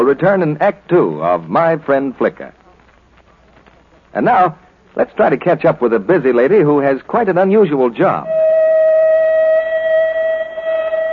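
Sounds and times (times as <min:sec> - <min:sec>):
speech: 0:00.0 - 0:02.6, 0:04.1 - 0:08.4
factory end-of-shift whistle: 0:08.2 - 0:11.1.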